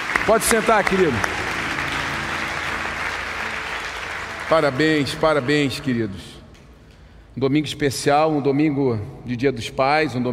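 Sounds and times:
audience applauding: 0:00.0 - 0:06.5
speech: 0:00.3 - 0:01.3, 0:04.5 - 0:06.3, 0:07.4 - 0:10.3.

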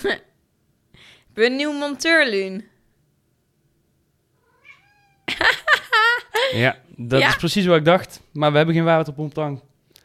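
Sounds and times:
speech: 0:00.0 - 0:00.3, 0:01.0 - 0:02.7, 0:05.3 - 0:05.6, 0:06.4 - 0:09.7
cat meowing in a kitchen drawer: 0:04.4 - 0:05.3.

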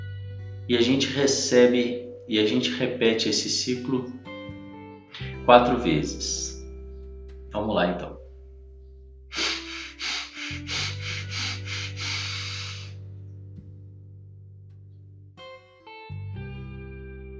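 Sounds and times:
speech: 0:00.7 - 0:04.3, 0:05.5 - 0:06.5, 0:07.6 - 0:08.1
short breaths drawn in through the nose in a breathing exercise: 0:09.3 - 0:13.0.

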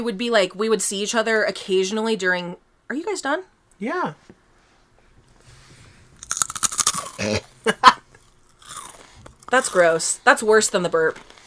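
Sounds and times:
speech: 0:00.0 - 0:04.4, 0:07.2 - 0:08.0, 0:09.5 - 0:11.3
flaming hot Cheetos being crunched and chewed: 0:06.2 - 0:07.5, 0:08.2 - 0:10.2.

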